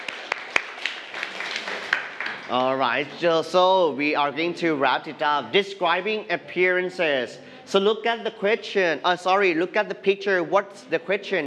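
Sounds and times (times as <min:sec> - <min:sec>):
hands clapping: 0:00.0 - 0:02.8
faint hiss: 0:02.5 - 0:11.4
speech: 0:02.5 - 0:11.4.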